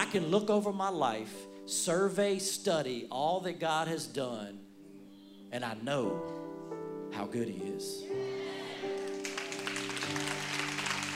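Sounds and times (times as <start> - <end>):
speech: 0.1 - 4.7, 5.5 - 6.4, 7.1 - 8.3
audience clapping: 8.6 - 11.1.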